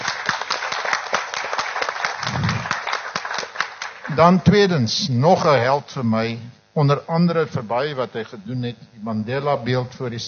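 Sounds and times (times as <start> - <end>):
audience clapping: 0.0 - 4.6
speech: 4.2 - 10.2.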